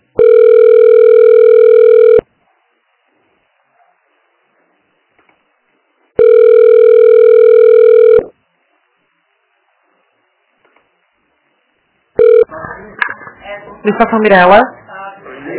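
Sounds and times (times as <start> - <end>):
telephone ringing tones while a call is transferred: 0.2 - 2.2, 6.2 - 8.3, 12.2 - 12.5
speech: 14.0 - 14.8.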